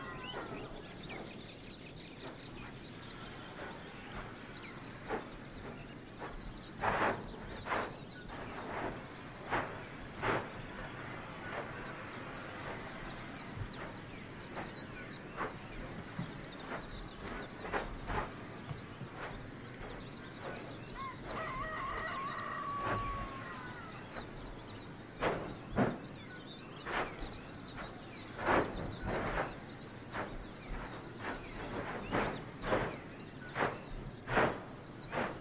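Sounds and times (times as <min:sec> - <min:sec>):
birds at Kilauea Volcano in Hawaii: 0:00.0 - 0:35.3.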